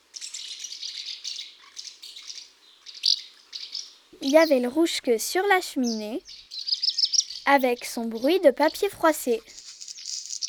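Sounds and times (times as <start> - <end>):
swallows twittering under the roofs: 0.0 - 10.4
speech: 4.2 - 6.4, 7.5 - 9.6.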